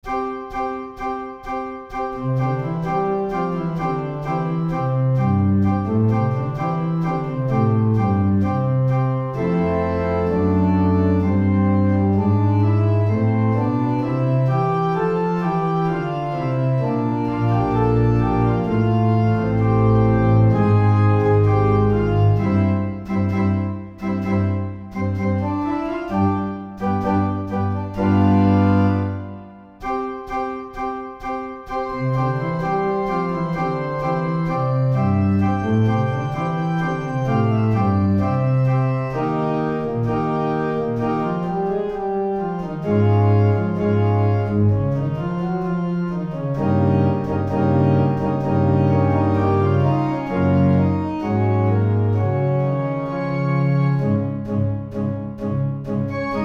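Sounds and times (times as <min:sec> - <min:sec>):
organ: 0:00.0 - 0:56.4.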